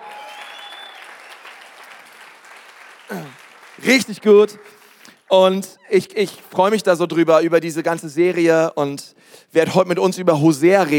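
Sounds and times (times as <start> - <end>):
audience applause: 0.0 - 5.0
speech: 3.1 - 10.9.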